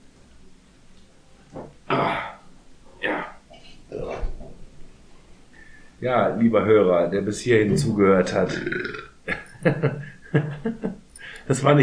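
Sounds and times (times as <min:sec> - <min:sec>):
drawn-out throaty burp: 0:01.9 - 0:04.4, 0:07.7 - 0:09.5
speech: 0:06.0 - 0:09.0, 0:11.5 - 0:11.8
laughter: 0:09.3 - 0:11.0.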